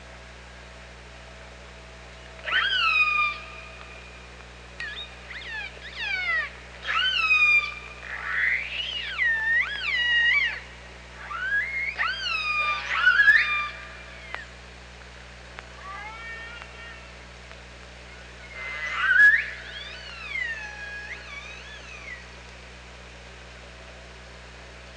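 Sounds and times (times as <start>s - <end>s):
low hum: 0.0s - 24.9s
orca calls: 2.4s - 3.6s, 4.8s - 10.6s, 11.2s - 14.4s, 15.8s - 17.2s, 18.1s - 22.3s.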